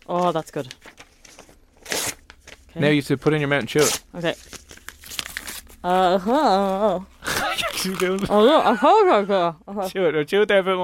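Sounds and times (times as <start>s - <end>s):
speech: 0.1s - 1.0s, 2.8s - 4.6s, 5.8s - 7.1s, 7.8s - 10.8s
paper being torn and shredded: 0.2s - 2.7s, 3.6s - 6.0s, 6.6s - 8.3s.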